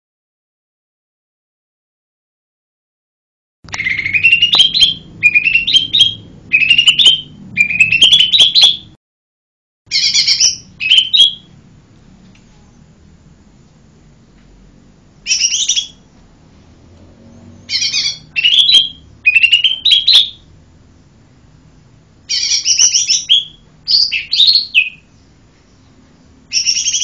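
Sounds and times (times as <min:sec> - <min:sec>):
bird singing lively high chirped phrases: 0:03.7 - 0:09.0, 0:09.9 - 0:11.5, 0:15.2 - 0:16.1, 0:17.2 - 0:20.5, 0:21.8 - 0:27.0.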